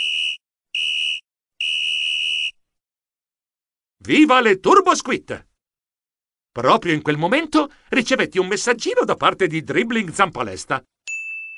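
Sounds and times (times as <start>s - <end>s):
whistle being blown: 0.0s - 2.6s
speech: 4.0s - 5.5s, 6.6s - 10.9s.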